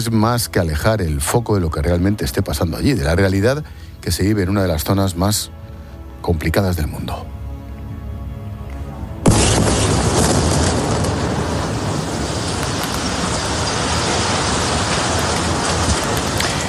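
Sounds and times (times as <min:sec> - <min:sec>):
speech: 0:00.0 - 0:05.6, 0:06.2 - 0:07.4
destruction of the Gafri Tower in Gaza City's port area: 0:09.2 - 0:16.6
loud boom of the Gafri Tower destruction: 0:09.2 - 0:16.6.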